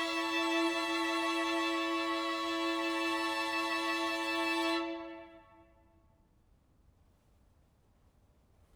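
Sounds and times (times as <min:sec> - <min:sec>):
string quartet: 0:00.0 - 0:05.5.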